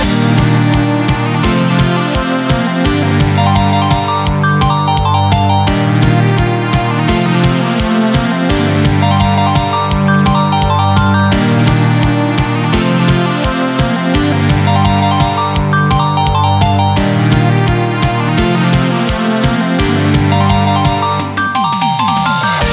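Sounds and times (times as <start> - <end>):
eurobeat music: 0.0 - 22.7.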